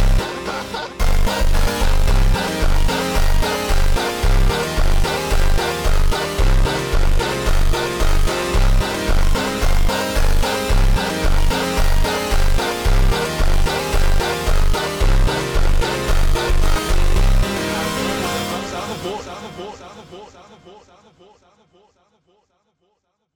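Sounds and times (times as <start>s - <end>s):
slowed funk music: 0.0s - 18.5s.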